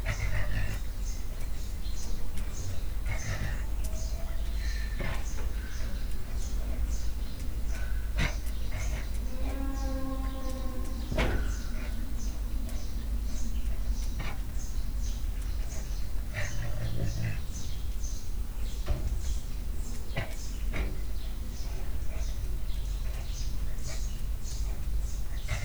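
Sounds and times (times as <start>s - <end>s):
annoyed caracal: 0.0s - 25.6s.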